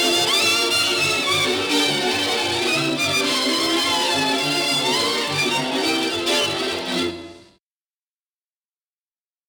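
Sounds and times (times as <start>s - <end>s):
Hungarian folk orchestra playing a csardas: 0.0s - 7.5s.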